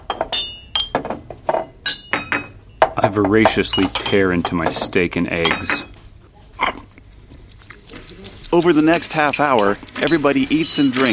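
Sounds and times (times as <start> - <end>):
plates of food set down on a table by waiters: 0.0 - 6.1
speech: 3.0 - 5.9, 8.6 - 11.1.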